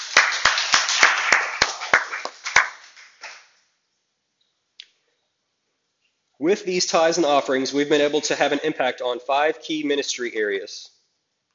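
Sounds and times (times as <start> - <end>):
audience clapping in praise: 0.0 - 3.6
speech: 6.4 - 11.0.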